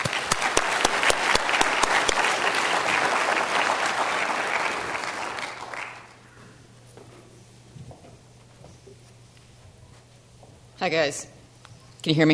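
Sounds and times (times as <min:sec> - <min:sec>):
audience applause: 0:00.0 - 0:06.2
speech: 0:10.8 - 0:11.3, 0:12.0 - 0:12.3.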